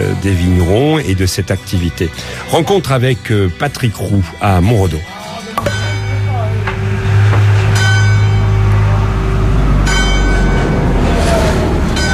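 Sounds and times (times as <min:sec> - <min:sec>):
speech: 0:00.2 - 0:05.8
train passing on the railway beside Route nationale 113 at Montredon: 0:05.7 - 0:12.1.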